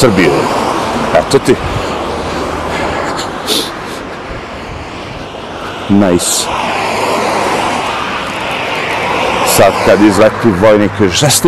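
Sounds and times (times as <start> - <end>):
speech: 0.0 - 1.8, 5.9 - 7.1, 9.6 - 11.4
small airplane flying overhead: 0.2 - 11.2.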